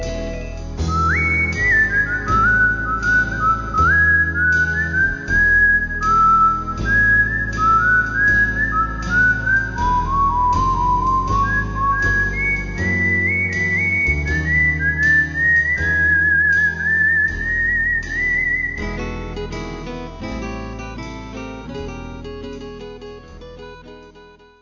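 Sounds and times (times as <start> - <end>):
person whistling a swing tune: 0.0 - 19.4.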